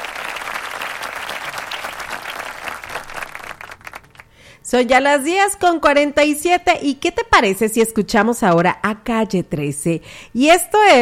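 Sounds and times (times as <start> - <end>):
applause: 0.0 - 4.5
speech: 4.7 - 11.0.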